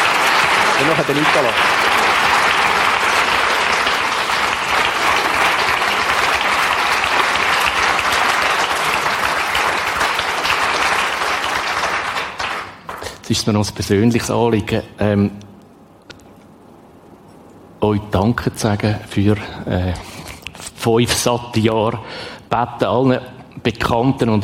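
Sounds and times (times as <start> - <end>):
audience applause: 0.0 - 13.2
speech: 0.8 - 1.9, 13.3 - 15.5, 17.8 - 20.1, 20.8 - 24.4.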